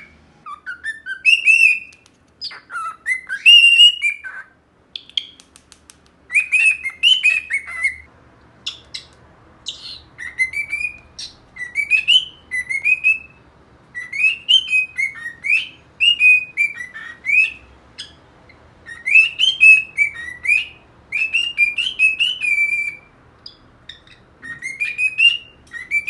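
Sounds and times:
cockatiel whistling song: 0.0s - 5.4s, 6.3s - 18.2s, 18.8s - 26.0s.

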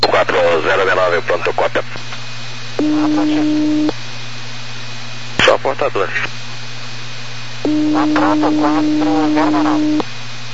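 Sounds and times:
radio carrier signal with heavy hiss: 0.0s - 3.8s, 5.4s - 6.4s, 7.7s - 10.0s
speech: 0.5s - 2.3s, 5.8s - 6.4s, 7.7s - 10.1s.

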